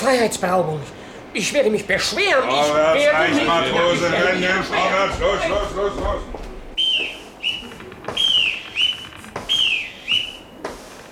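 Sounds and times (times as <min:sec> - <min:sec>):
speech: 0:00.0 - 0:06.4
boatswain's pipe whistle: 0:06.8 - 0:10.5.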